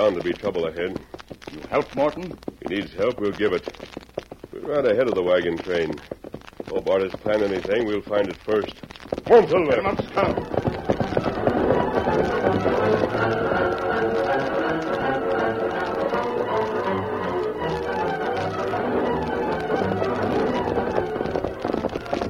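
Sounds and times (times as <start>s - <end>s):
speech: 0.0s - 4.0s, 4.7s - 10.6s
horses galloping: 0.0s - 22.2s.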